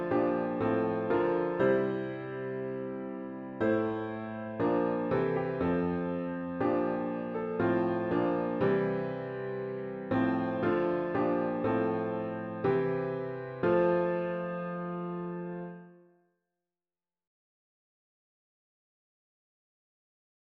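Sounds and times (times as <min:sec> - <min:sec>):
hymn on piano with intro: 0:00.0 - 0:16.0.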